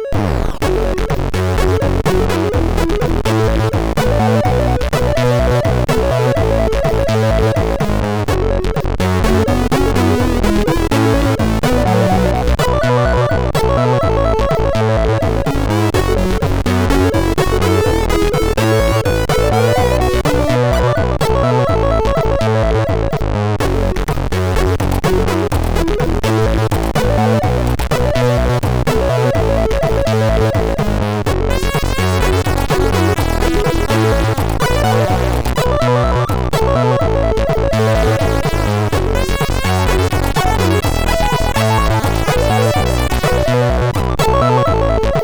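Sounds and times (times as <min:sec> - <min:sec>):
SID MOS6581R3 chip sound: 0:00.1 - 0:45.2.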